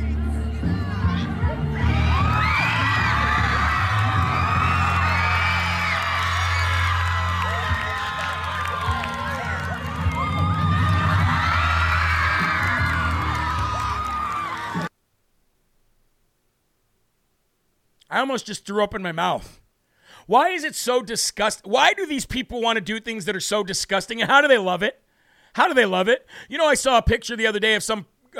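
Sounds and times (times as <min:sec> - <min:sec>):
children cheering, whooping and shrieking for a drag queen dancing on an outdoor stage: 0:01.0 - 0:14.9
speech: 0:18.2 - 0:19.6, 0:20.2 - 0:25.0, 0:25.6 - 0:28.3.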